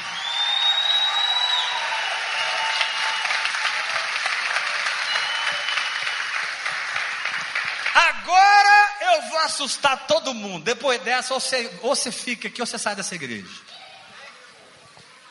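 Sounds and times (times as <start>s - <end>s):
audience applause: 0.0s - 8.3s
speech: 9.2s - 13.8s.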